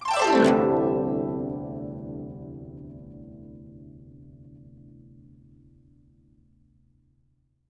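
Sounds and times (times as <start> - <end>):
guqin plucked: 0.0 - 5.4.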